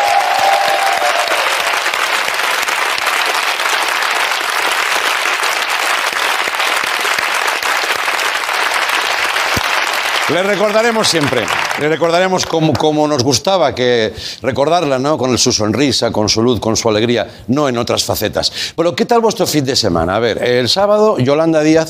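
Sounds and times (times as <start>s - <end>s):
audience applause: 0.0s - 12.3s
speech: 10.3s - 21.8s.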